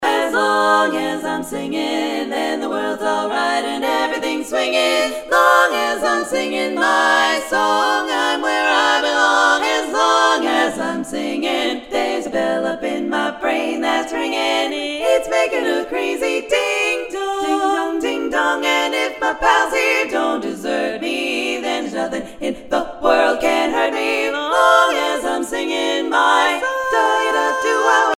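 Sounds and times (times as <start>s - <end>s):
person singing: 0.0s - 28.1s.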